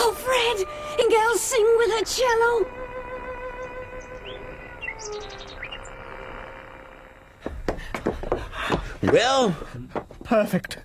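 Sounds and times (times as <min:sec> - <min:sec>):
steady sustained tone: 0:00.0 - 0:07.4
speech: 0:00.5 - 0:03.0, 0:09.0 - 0:10.8
bird song over a radio: 0:04.0 - 0:06.0.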